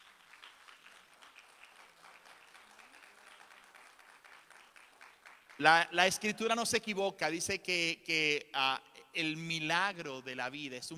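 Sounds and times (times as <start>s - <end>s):
audience applause: 0.0s - 5.6s
speech: 5.6s - 10.9s.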